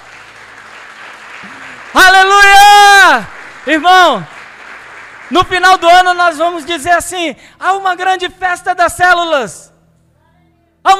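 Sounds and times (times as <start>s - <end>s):
audience applause: 0.0s - 6.3s
speech: 1.4s - 2.5s, 3.2s - 4.4s, 5.3s - 9.7s.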